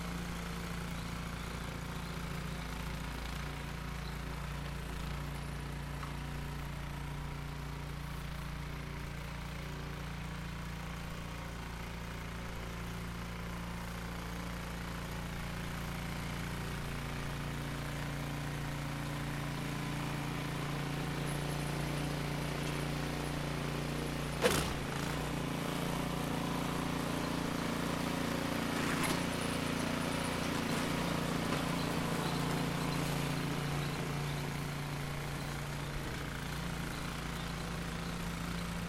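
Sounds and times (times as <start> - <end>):
snowplough: 0.0 - 38.8.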